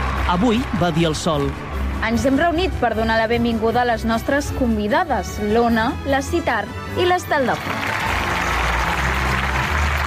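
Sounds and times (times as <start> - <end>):
applause: 0.0 - 2.4, 7.2 - 10.0
speech: 0.3 - 7.9.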